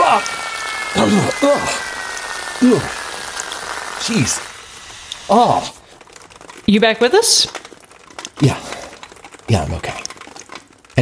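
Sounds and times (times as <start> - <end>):
water spraying from an emergency fire hose: 0.0 - 6.2
speech: 1.0 - 1.9, 2.6 - 3.0, 4.0 - 4.5, 5.3 - 5.8, 6.7 - 7.6, 8.4 - 8.8, 9.5 - 10.1.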